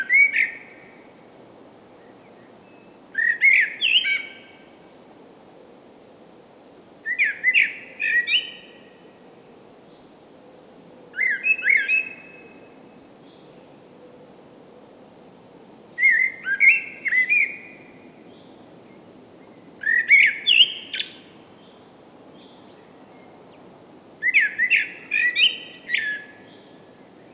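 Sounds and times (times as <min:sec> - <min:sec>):
common blackbird Turdus merula fluting whistled song: 0:03.2 - 0:04.7, 0:07.1 - 0:08.8, 0:11.2 - 0:12.6, 0:16.0 - 0:18.5, 0:19.8 - 0:21.3, 0:24.2 - 0:27.3.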